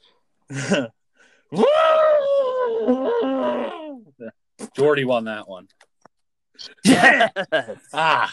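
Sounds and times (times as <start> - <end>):
speech: 0.5 - 1.9, 4.8 - 5.8, 6.6 - 8.3
person imitating an African elephant: 1.6 - 4.3
laughter: 6.8 - 8.3.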